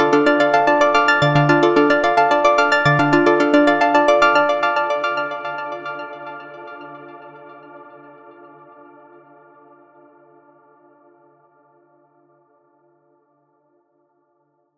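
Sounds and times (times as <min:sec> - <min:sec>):
Arturia synthesizer sound: 0:00.0 - 0:05.0.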